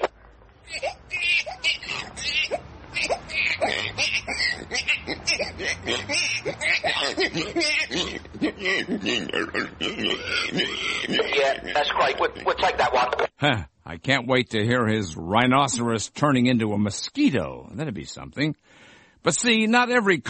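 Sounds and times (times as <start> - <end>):
voice mimicking a baby's cries morphing into pig squeals and snorts: 0.6 - 12.7
speech: 11.5 - 20.2.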